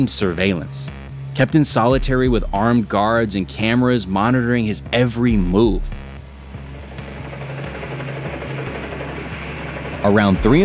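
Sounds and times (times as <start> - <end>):
speech: 0.0 - 6.0, 10.0 - 10.6
helicopter low engine drone: 0.0 - 10.6
helicopter rotor thumping overhead: 3.6 - 10.6.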